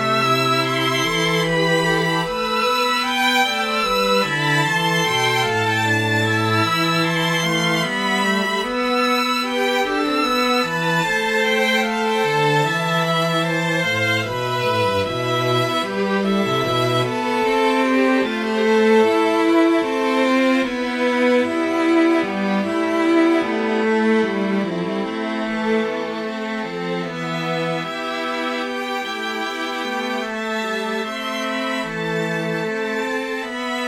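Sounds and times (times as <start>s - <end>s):
string quartet playing a medieval Phrygian canon requiem: 0.0s - 33.8s.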